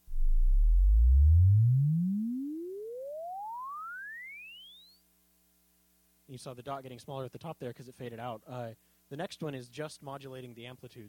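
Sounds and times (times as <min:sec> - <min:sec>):
pure sine sweep from 20 Hz to 5,000 Hz: 0:00.0 - 0:05.0
speech: 0:06.3 - 0:11.0.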